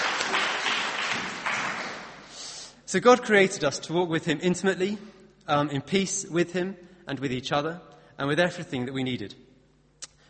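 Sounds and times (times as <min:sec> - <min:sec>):
audience applause: 0:00.0 - 0:02.4
speech: 0:02.9 - 0:09.4.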